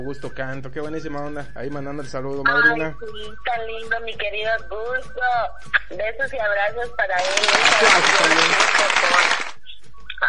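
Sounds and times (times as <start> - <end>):
speech: 0.0 - 9.4
clapping: 7.2 - 9.6.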